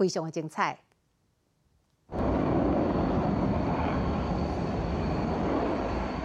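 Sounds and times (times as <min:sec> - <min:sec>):
speech: 0:00.0 - 0:00.9
military jet roaring overhead: 0:02.1 - 0:06.2.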